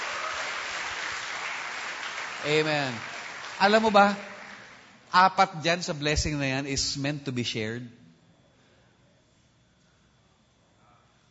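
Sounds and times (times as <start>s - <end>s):
congregation applauding during a church service: 0.0s - 5.8s
speech: 2.4s - 4.3s, 5.1s - 8.0s.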